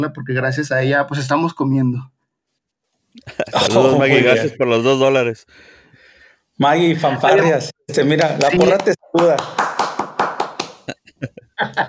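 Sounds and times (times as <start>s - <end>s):
speech: 0.0s - 2.1s, 3.2s - 5.8s, 6.6s - 9.7s, 11.2s - 11.8s
laughter: 3.2s - 4.3s, 10.6s - 11.8s
hand clapping: 8.2s - 11.0s.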